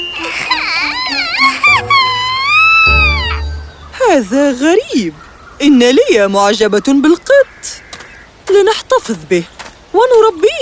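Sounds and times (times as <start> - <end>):
little girl crying: 0.2 - 3.4
speech: 4.1 - 7.5, 8.5 - 10.6.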